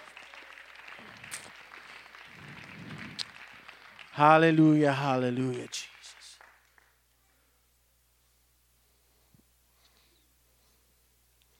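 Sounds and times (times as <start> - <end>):
cheers: 0.0 - 4.2
audience clapping: 0.0 - 7.4
speech: 4.2 - 5.9.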